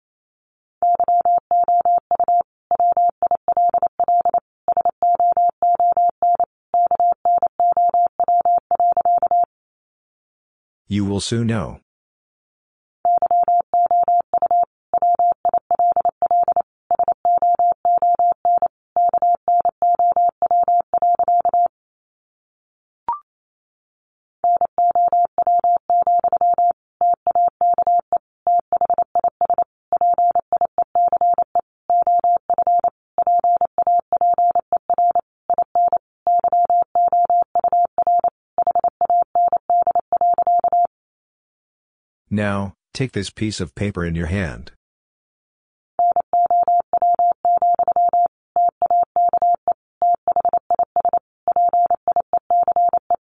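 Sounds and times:
Morse code tones at 28 words per minute: 0.8 - 9.5, 13.1 - 21.7, 24.5 - 40.9, 46.0 - 53.2
speech: 10.9 - 11.8, 42.4 - 44.8.

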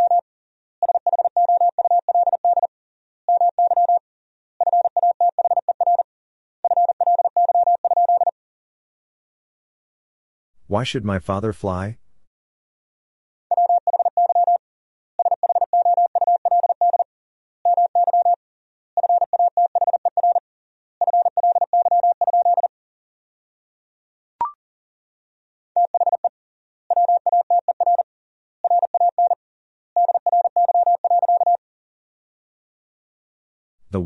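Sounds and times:
Morse code tones at 40 wpm: 0.0 - 0.2, 0.8 - 2.7, 3.3 - 4.0, 4.6 - 6.0, 6.6 - 8.3, 13.5 - 14.6, 15.2 - 17.0, 17.7 - 18.4, 19.0 - 20.4, 21.0 - 22.7, 25.8 - 26.3, 26.9 - 28.0, 28.6 - 29.4, 30.0 - 31.6
speech: 10.7 - 12.0.

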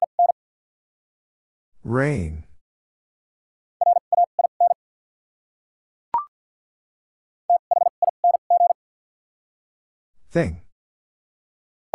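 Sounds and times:
speech: 1.8 - 2.5, 10.3 - 10.6
Morse code tones at 50 wpm: 3.8 - 4.8, 7.5 - 8.8.

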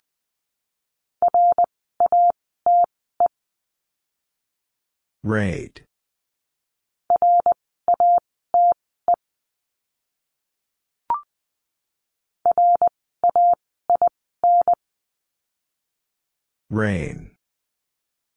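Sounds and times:
Morse code tones: 1.2 - 3.3, 7.1 - 9.2, 12.5 - 14.8
speech: 5.2 - 5.9, 16.7 - 17.3.

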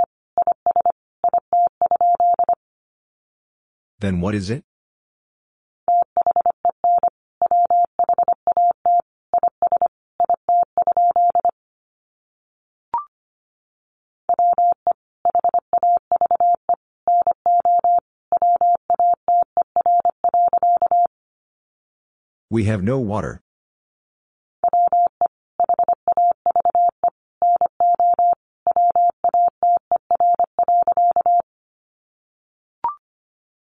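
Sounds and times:
Morse code tones at 25 wpm: 0.0 - 2.6, 5.9 - 11.5, 14.3 - 21.1, 24.6 - 31.4
speech: 4.0 - 4.7, 22.6 - 23.4.

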